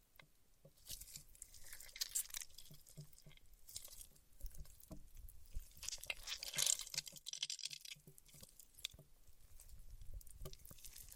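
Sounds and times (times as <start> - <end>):
paraffin wax peeling, tapping and scratching: 0.8 - 4.9, 5.5 - 9.8.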